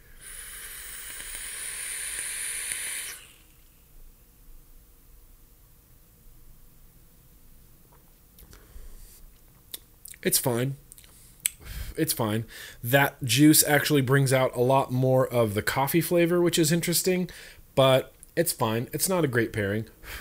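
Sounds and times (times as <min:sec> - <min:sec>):
vape being puffed and exhaled: 0:00.0 - 0:03.6
speech: 0:10.2 - 0:10.8, 0:12.0 - 0:20.1.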